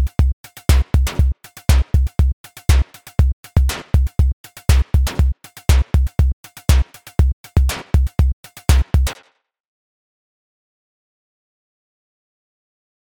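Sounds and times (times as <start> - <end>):
FM synth beats: 0.0 - 2.8, 3.6 - 6.8, 7.6 - 9.2.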